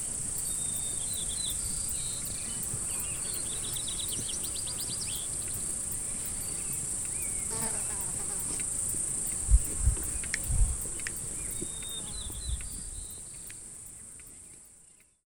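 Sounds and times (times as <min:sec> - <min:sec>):
crickets chirping: 0:00.0 - 0:15.2
birds singing: 0:00.4 - 0:05.5, 0:06.3 - 0:07.6, 0:11.4 - 0:13.7.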